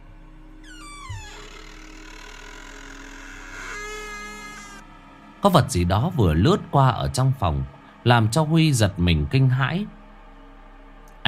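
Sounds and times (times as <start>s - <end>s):
old door hinge creaking as door opens: 0.6s - 4.8s
speech: 5.4s - 10.0s.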